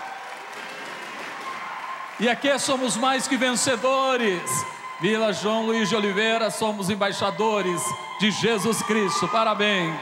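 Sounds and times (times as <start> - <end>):
audience clapping: 0.0 - 4.5
speech: 2.2 - 10.0.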